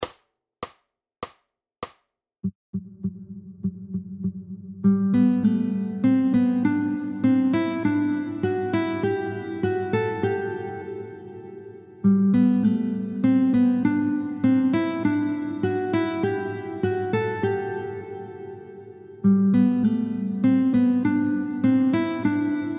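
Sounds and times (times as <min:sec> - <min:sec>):
guitar sequencing exercise: 0:04.8 - 0:22.7.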